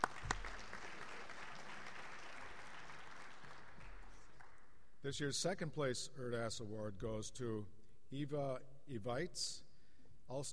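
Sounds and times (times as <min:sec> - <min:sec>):
audience applause: 0:00.0 - 0:04.6
speech: 0:05.0 - 0:09.7, 0:10.3 - 0:10.5.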